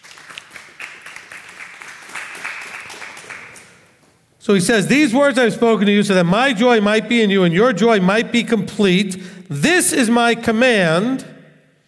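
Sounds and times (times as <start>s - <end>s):
crowd applauding: 0.0s - 4.0s
speech: 4.4s - 11.3s.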